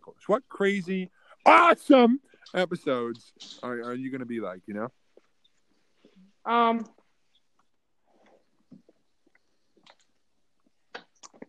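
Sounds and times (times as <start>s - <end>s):
speech: 0.2s - 5.0s, 6.4s - 7.0s
person chewing a brownie: 8.4s - 11.4s.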